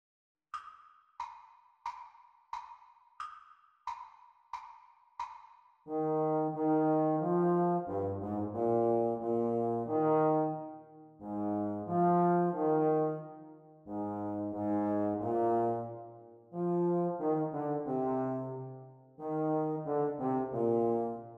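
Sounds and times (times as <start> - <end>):
trombone playalong: 5.9 - 13.3, 13.9 - 16.0, 16.6 - 21.3.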